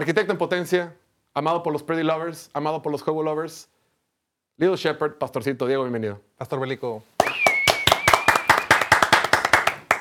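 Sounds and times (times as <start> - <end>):
speech: 0.0 - 3.7, 4.6 - 7.1
applause: 7.2 - 10.0.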